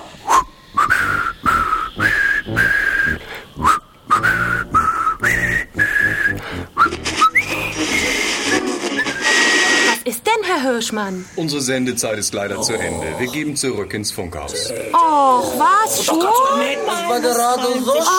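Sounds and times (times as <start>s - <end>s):
person whistling a gentle birthday song: 0.3s - 9.5s
speech: 10.8s - 18.1s.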